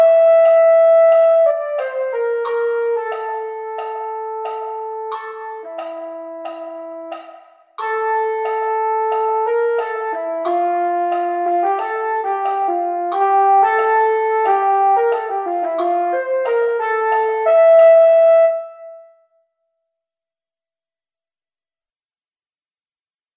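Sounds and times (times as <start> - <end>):
mellophone playing slow practice exercises: 0.0 - 19.2.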